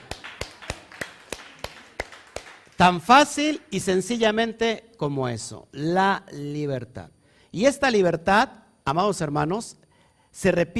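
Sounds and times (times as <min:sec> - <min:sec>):
audience applause: 0:00.0 - 0:02.9
speech: 0:02.8 - 0:10.7.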